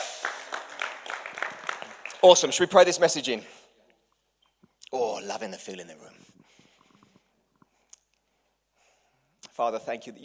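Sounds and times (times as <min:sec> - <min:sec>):
audience applause: 0:00.0 - 0:02.8
speech: 0:02.2 - 0:03.6, 0:05.4 - 0:06.3, 0:09.6 - 0:10.2.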